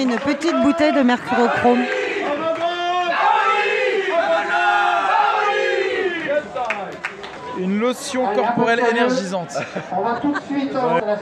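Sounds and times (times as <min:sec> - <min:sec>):
speech: 0:00.0 - 0:02.0, 0:07.6 - 0:11.1
audience applauding: 0:00.0 - 0:02.9, 0:06.3 - 0:07.7
audience cheering: 0:00.0 - 0:07.6
laughter: 0:09.0 - 0:11.1.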